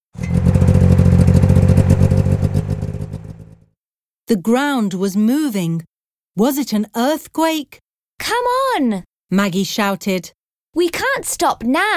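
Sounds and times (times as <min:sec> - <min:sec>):
snowmobile engine rumbling and rattling: 0:00.2 - 0:03.6
speech: 0:04.3 - 0:11.9.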